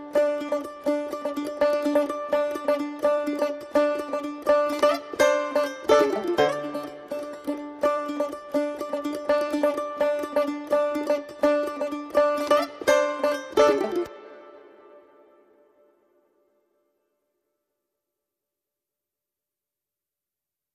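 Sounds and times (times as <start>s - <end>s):
banjo: 0.0s - 16.1s
mandolin: 0.0s - 16.5s.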